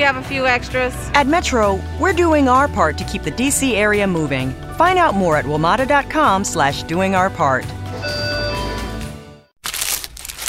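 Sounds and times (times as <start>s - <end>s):
speech: 0.1s - 8.2s
unwrapping a paper-wrapped McDonald's steak egg and cheese bagel: 9.6s - 10.4s.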